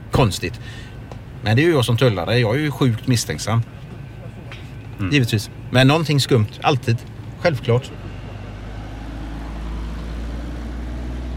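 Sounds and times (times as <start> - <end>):
car driving off through a container port: 0.0 - 11.3
speech: 0.2 - 3.8, 5.0 - 8.0.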